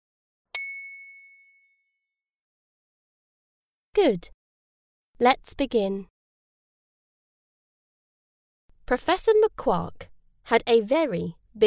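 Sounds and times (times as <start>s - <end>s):
page-turn bell ding: 0.6s - 2.0s
speech: 4.0s - 4.4s, 5.2s - 6.1s, 8.9s - 11.6s.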